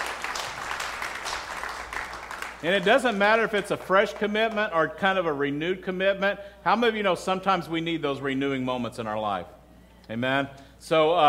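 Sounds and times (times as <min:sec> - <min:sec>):
audience applause: 0:00.0 - 0:04.6
speech: 0:02.6 - 0:11.2.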